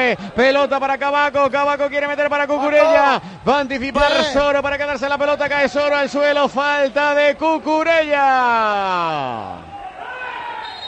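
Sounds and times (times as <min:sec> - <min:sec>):
speech: 0:00.0 - 0:09.7
noise: 0:00.0 - 0:10.8
football coach Bordalás shouting from the touchline during a Getafe match: 0:02.3 - 0:03.2, 0:03.8 - 0:04.6, 0:07.8 - 0:10.5.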